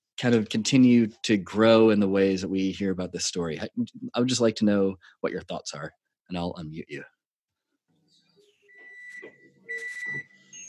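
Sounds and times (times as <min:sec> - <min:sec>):
speech: 0:00.2 - 0:07.2
reversing car backup beeper: 0:08.7 - 0:10.6.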